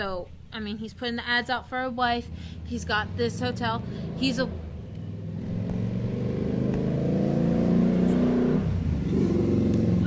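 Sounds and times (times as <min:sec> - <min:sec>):
speech: 0:00.0 - 0:04.6
car driving past outside: 0:02.3 - 0:10.0.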